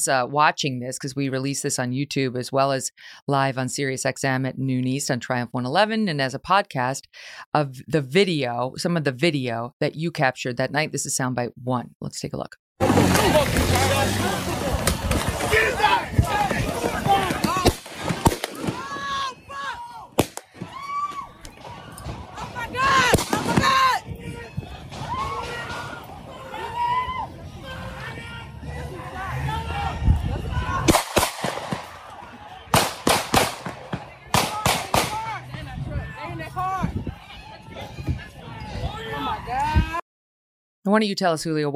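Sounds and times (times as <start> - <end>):
speech: 0.0 - 14.5, 40.9 - 41.7
crowd shouting: 12.8 - 40.0
gunshots in night-time video footage of the Rittenhouse shooting: 16.4 - 19.0, 20.2 - 20.6, 21.5 - 24.0, 30.9 - 35.4.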